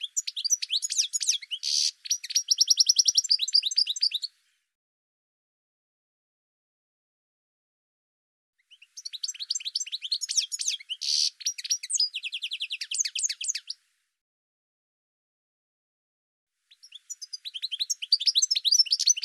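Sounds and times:
bird song with high chirps, down-slurred notes and quick trills: 0:00.0 - 0:04.8, 0:08.6 - 0:13.9, 0:16.6 - 0:19.2.

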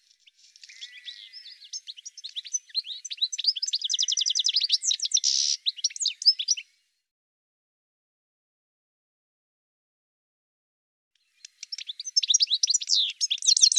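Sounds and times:
bird song of high chirps and trills: 0:00.0 - 0:06.7, 0:11.2 - 0:13.7.

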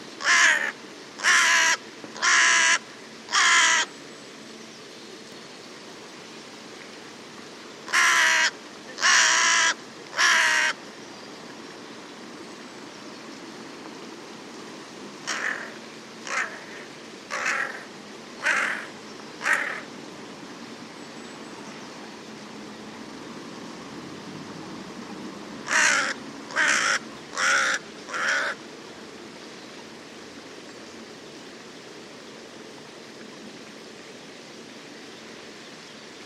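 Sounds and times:
bird harsh caws: 0:00.2 - 0:03.9, 0:07.9 - 0:10.8, 0:15.2 - 0:19.9, 0:25.7 - 0:28.6.

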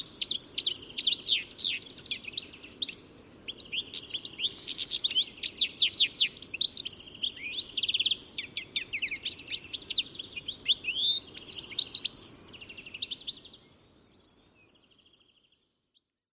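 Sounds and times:
birds chirping: 0:00.0 - 0:16.2.

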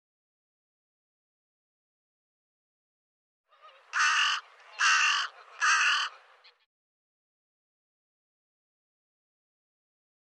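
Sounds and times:
bird giving harsh raspy caws: 0:03.7 - 0:06.2.

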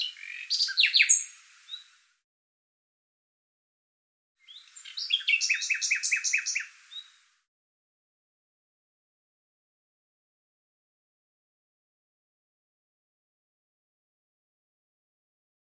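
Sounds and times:
bird calling in rapid high chirps: 0:00.0 - 0:01.8, 0:04.5 - 0:07.1.

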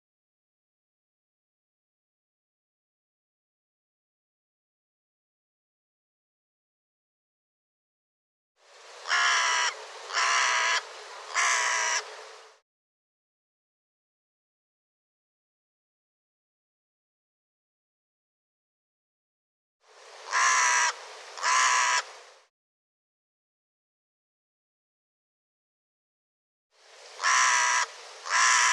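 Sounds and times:
harsh bird caws: 0:09.0 - 0:12.1, 0:20.3 - 0:22.1, 0:27.2 - 0:28.7.

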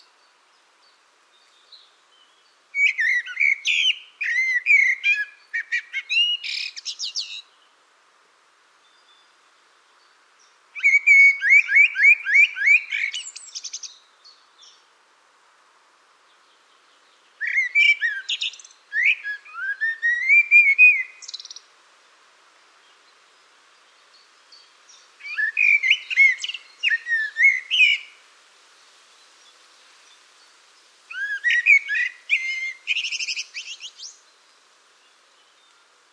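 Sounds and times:
bird calling: 0:02.8 - 0:07.5, 0:10.8 - 0:13.9, 0:17.4 - 0:21.6, 0:25.2 - 0:28.2, 0:31.1 - 0:34.2.

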